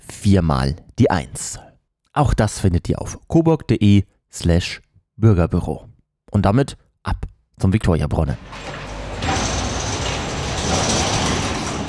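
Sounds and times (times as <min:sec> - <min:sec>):
speech: 0:00.2 - 0:08.8
construction site noise: 0:08.3 - 0:11.8.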